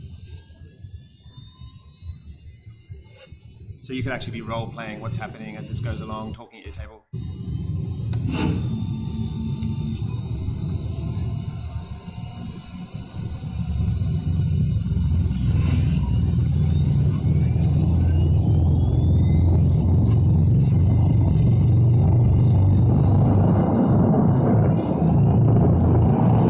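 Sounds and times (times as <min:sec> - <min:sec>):
speech: 0:03.2 - 0:07.2
washing machine drum spinning up: 0:07.2 - 0:26.4.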